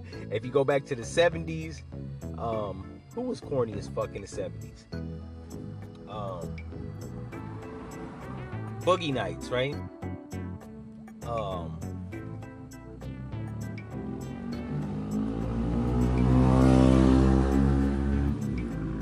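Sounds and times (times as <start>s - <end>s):
speech: 0.3s - 5.3s, 8.8s - 10.0s, 11.3s - 11.9s
motorcycle engine revving outside: 6.2s - 9.1s, 13.3s - 19.0s.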